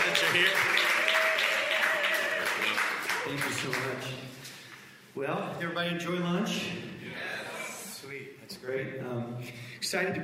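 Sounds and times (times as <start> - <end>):
audience applause greeting a pastor at a church lunch gathering: 0.0 - 4.1
speech: 0.3 - 0.7, 3.3 - 4.4, 5.2 - 7.0, 8.1 - 10.2.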